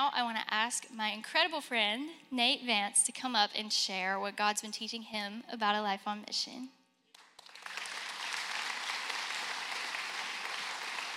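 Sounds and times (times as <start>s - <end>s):
speech: 0.0s - 6.8s
church audience applause: 7.2s - 11.1s.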